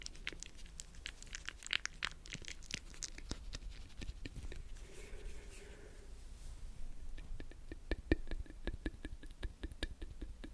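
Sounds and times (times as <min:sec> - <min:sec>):
wet mouth clicks and pops: 0:00.0 - 0:04.7, 0:07.1 - 0:10.5
soft breathy sounds: 0:04.8 - 0:06.2.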